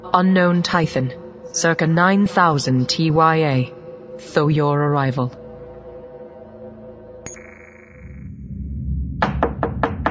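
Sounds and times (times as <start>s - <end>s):
speech: 0.0s - 5.4s
knocking on a bedroom door: 9.2s - 10.1s.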